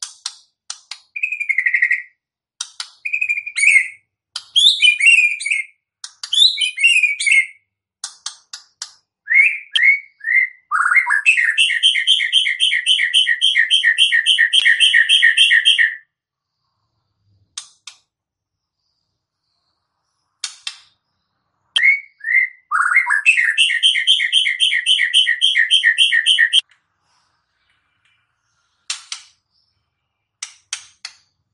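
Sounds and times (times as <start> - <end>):
White-rumped shama song: 1.1 - 2.2, 3.0 - 7.7, 9.2 - 16.1, 21.0 - 26.6.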